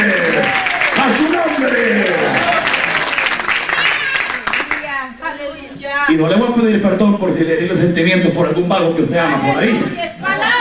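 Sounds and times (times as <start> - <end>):
audience applause: 0.0 - 5.0
laughter: 0.0 - 5.4, 7.4 - 10.5
speech: 6.1 - 10.2.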